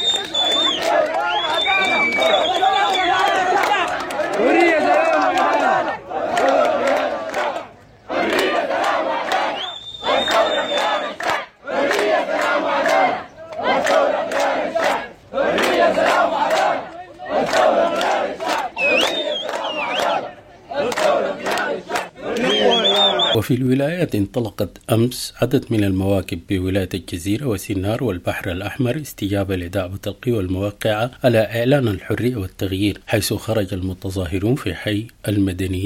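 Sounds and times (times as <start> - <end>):
students chanting protest slogans by the roads near Al-Fajr University College: 0.2 - 23.4
speech: 23.5 - 35.8.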